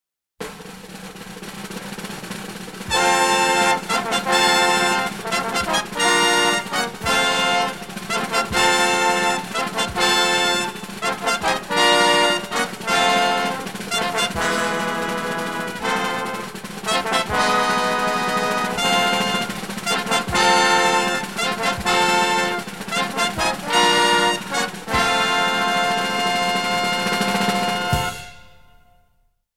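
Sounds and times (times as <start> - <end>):
fanfare: 0.4 - 29.2.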